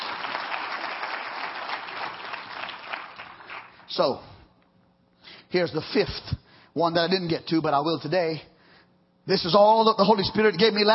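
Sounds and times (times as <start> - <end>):
people clapping: 0.0 - 4.2
speech: 3.9 - 4.3, 5.5 - 8.5, 9.3 - 10.9.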